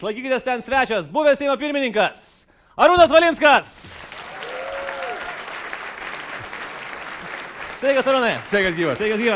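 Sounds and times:
speech: 0.0 - 4.1, 7.8 - 9.3
studio audience applause welcoming a former parliament speaker onto a show: 4.0 - 9.3.

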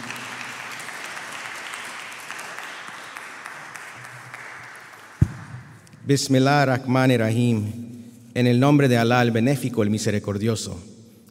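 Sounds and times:
audience applauding: 0.0 - 5.6
speech: 6.1 - 7.8, 8.4 - 11.3.

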